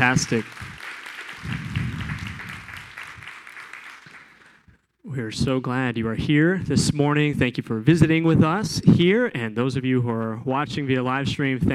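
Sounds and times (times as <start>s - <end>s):
speech: 0.0s - 0.7s, 5.2s - 11.7s
audience applause: 0.0s - 4.7s.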